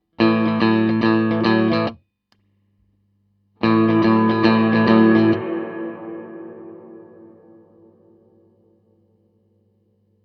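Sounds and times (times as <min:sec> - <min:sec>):
Ampeg GVT52-212 guitar amplifier with spring reverb: 0:00.1 - 0:02.0, 0:03.6 - 0:08.6.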